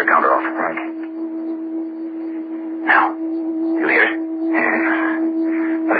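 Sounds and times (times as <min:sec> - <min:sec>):
high-frequency hum: 0:00.0 - 0:05.9.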